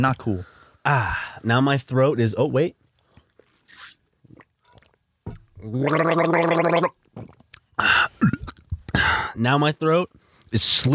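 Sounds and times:
speech: 0.0s - 2.8s, 5.6s - 7.0s, 9.4s - 10.9s
gargling: 5.6s - 8.7s.

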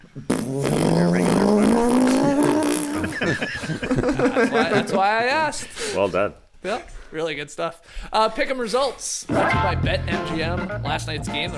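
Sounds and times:
speech: 0.2s - 1.5s, 3.4s - 11.5s
person imitating a motorized fart with a buzzing lip-trill: 0.2s - 3.4s
laughter: 2.1s - 5.2s.

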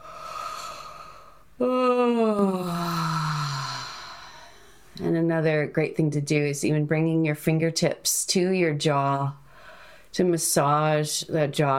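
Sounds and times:
person yawning: 0.0s - 4.5s
speech: 5.3s - 9.4s, 10.1s - 11.7s.

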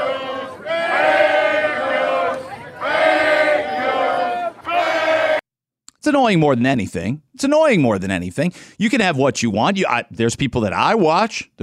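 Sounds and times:
crowd screaming protest chant: 0.0s - 5.4s
speech: 6.1s - 11.6s.

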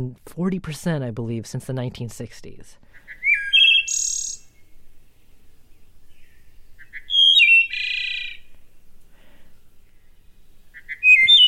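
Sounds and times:
speech: 0.0s - 3.1s
wood thrush song: 2.8s - 11.4s.

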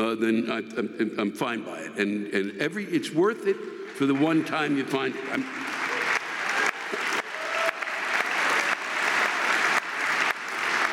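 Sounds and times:
speech: 0.1s - 5.8s
sustained applause from a sizable audience: 4.0s - 10.9s.

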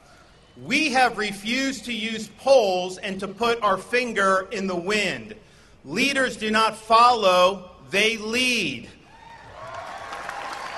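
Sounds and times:
speech: 0.6s - 9.0s
audience applause: 9.2s - 10.7s.

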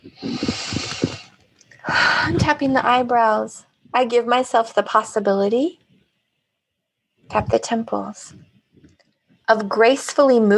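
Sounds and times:
big deep breath: 0.0s - 2.9s
speech: 2.5s - 5.8s, 7.3s - 8.5s, 9.5s - 10.5s.

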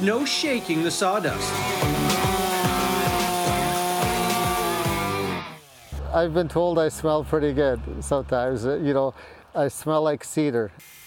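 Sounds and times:
speech: 0.0s - 2.4s, 6.1s - 11.0s
small chainsaw cutting wood: 0.0s - 6.0s.

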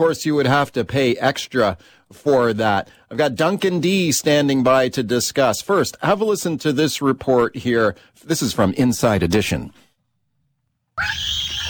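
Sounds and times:
speech: 0.0s - 9.8s, 11.0s - 11.4s
unruly child screaming on a transatlantic flight to New York: 11.0s - 11.6s.

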